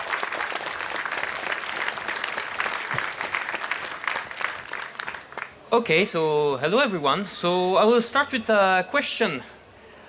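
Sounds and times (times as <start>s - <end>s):
audience applause: 0.0s - 5.6s
speech: 5.7s - 9.6s.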